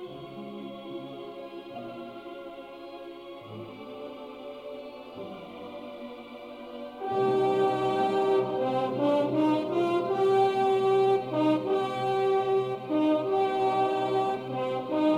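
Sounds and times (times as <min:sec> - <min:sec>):
symphonic choir: 0:00.0 - 0:15.1
orchestra: 0:07.0 - 0:15.1.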